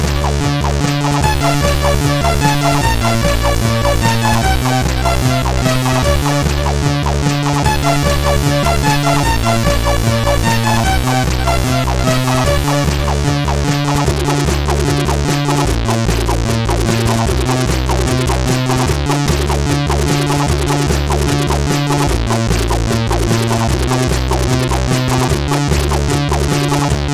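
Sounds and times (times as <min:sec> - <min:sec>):
chiptune music on a SID CSG8580R5 chip: 0:00.0 - 0:27.0.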